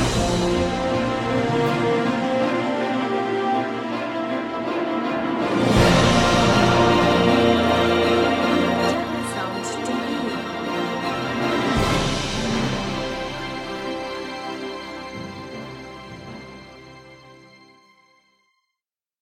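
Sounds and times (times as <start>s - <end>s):
movie trailer audio: 0.0s - 18.2s.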